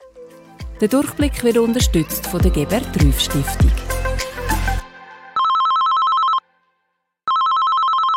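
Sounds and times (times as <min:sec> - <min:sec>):
speech: 0:00.8 - 0:03.9
telephone ringing: 0:05.4 - 0:06.5, 0:07.3 - 0:08.1.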